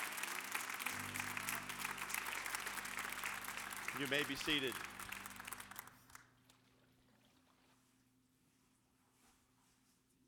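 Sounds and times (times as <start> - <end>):
audience applause: 0.0 - 6.3
speech: 3.9 - 4.9.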